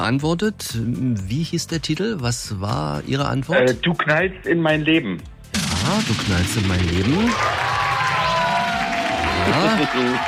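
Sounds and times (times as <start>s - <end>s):
speech: 0.0s - 7.8s, 9.5s - 10.2s
crowd cheering and clapping: 6.9s - 10.2s.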